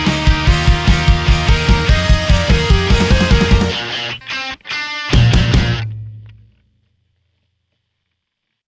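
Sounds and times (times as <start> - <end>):
medium rock song: 0.0 - 6.4.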